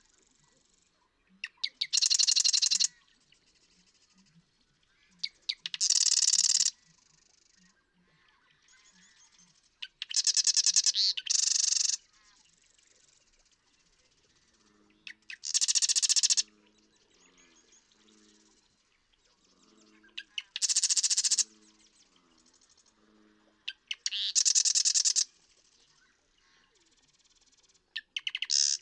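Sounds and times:
Marsh Wren song: 1.7s - 3.0s, 5.6s - 7.6s, 9.9s - 12.0s, 12.6s - 16.6s, 20.2s - 22.9s, 23.7s - 25.6s, 28.1s - 28.8s.

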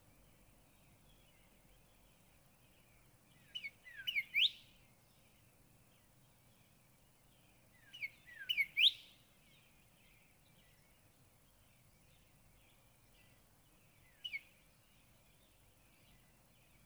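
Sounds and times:
Northern cardinal song of bright slurred whistled notes: 3.5s - 4.6s, 7.9s - 9.1s.

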